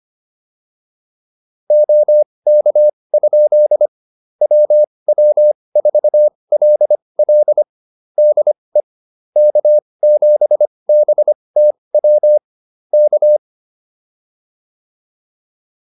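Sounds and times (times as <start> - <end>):
morse code QSO practice: 1.7 - 8.6, 9.4 - 12.4, 13.0 - 13.4.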